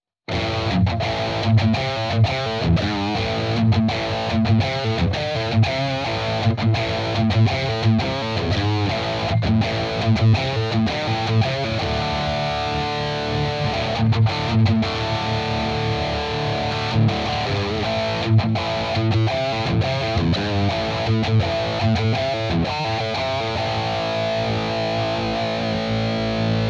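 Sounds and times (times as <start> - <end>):
tight guitar chug: 0.3 - 26.6.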